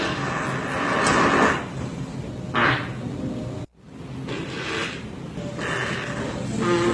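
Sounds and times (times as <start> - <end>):
farting: 0.0 - 1.7, 2.5 - 3.0, 4.3 - 6.9.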